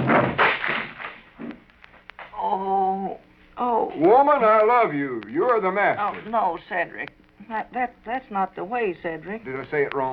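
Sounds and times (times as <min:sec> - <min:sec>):
wooden chair breaking to pieces: 0:00.0 - 0:01.6
speech: 0:04.0 - 0:10.1.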